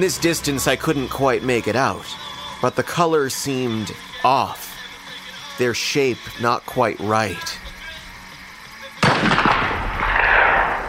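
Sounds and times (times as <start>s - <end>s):
speech: 0.0s - 4.7s, 5.6s - 7.7s
rifle shot echoing through a cornfield: 9.0s - 10.8s.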